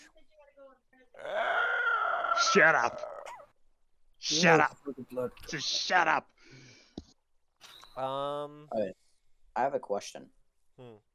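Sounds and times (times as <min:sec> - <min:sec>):
person vocally imitating a creature's dying screech: 0:01.2 - 0:03.4
speech: 0:02.4 - 0:03.1, 0:04.2 - 0:06.6, 0:08.0 - 0:09.0, 0:09.6 - 0:11.1.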